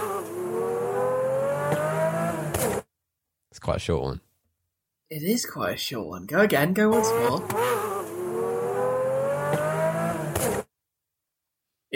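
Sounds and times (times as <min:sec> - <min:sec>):
car engine revving: 0:00.0 - 0:02.9, 0:06.8 - 0:10.7
car engine backfire pops: 0:02.4 - 0:02.9, 0:09.5 - 0:10.7
speech: 0:03.6 - 0:04.3, 0:05.1 - 0:07.9.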